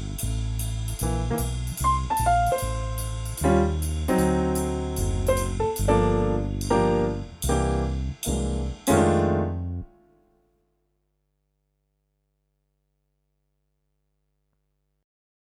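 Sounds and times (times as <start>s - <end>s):
modern jazz piano licks solo: 1.0s - 10.0s.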